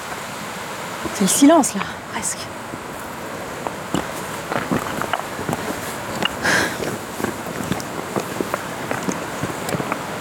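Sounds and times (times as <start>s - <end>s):
faint wind: 0.0s - 10.2s
speech: 1.2s - 2.7s
footsteps of someone walking outdoors on clay ground: 3.7s - 10.2s.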